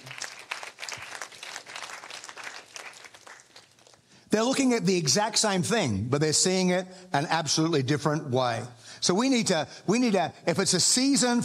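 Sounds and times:
audience applause: 0:00.0 - 0:04.0
speech: 0:04.3 - 0:11.4.

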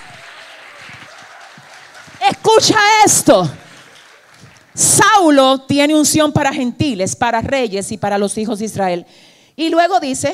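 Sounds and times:
crowd applauding: 0:00.0 - 0:05.2
speech: 0:02.6 - 0:03.6, 0:04.8 - 0:10.3.

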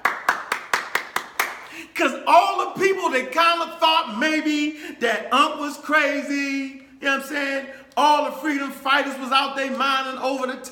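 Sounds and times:
audience clapping: 0:00.0 - 0:01.8
speech: 0:02.0 - 0:10.7.

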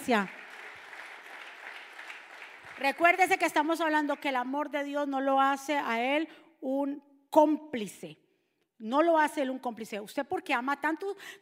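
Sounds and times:
speech: 0:00.0 - 0:00.4, 0:02.8 - 0:08.2, 0:08.8 - 0:11.3
audience applause: 0:00.0 - 0:03.2.

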